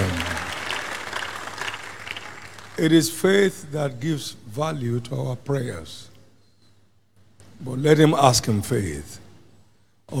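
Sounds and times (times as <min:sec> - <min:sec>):
audience clapping applause: 0:00.0 - 0:02.8
speech: 0:02.8 - 0:06.1, 0:07.6 - 0:09.2.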